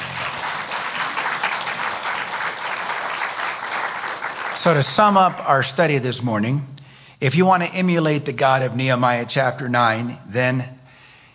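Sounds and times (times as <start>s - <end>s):
crowd applauding: 0.0s - 5.5s
speech: 4.6s - 10.8s.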